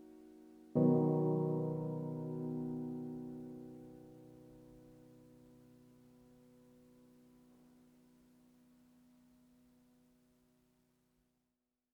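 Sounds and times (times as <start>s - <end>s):
relaxing piano jazz music: 0.0s - 7.4s.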